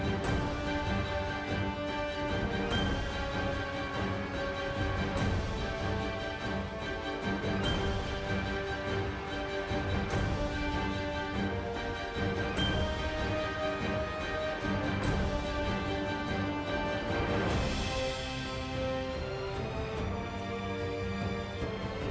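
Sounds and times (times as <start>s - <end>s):
battle music: 0.0s - 22.0s.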